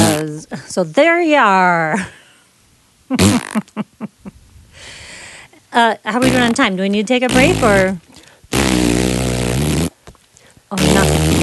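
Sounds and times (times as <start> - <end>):
elephant fart: 0.0 - 0.3, 3.1 - 3.8, 6.2 - 6.6, 7.3 - 10.0, 10.8 - 11.4
speech: 0.8 - 2.2, 3.1 - 4.1, 5.7 - 8.1, 10.7 - 11.4.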